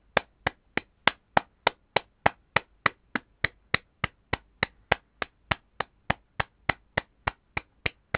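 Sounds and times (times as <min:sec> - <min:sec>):
hands clapping: 0:00.0 - 0:08.1.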